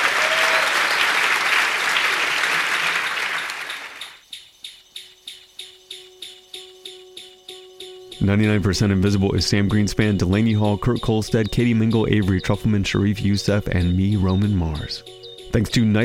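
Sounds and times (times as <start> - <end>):
audience applause welcoming a guest at a live show: 0.0 - 4.2
rhythmic pulse: 3.1 - 16.0
speech: 8.2 - 16.0.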